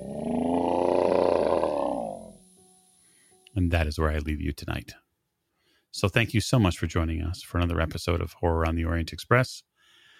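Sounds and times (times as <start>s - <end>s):
low guttural growl: 0.0s - 2.4s
speech: 3.6s - 5.0s, 6.0s - 9.7s.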